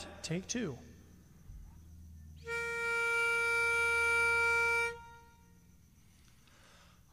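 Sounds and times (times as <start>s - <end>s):
lead melody: 2.5s - 5.3s.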